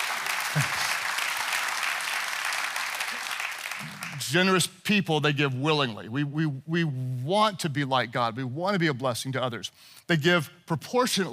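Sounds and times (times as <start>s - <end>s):
audience clapping: 0.0s - 4.5s
speech: 4.2s - 11.3s.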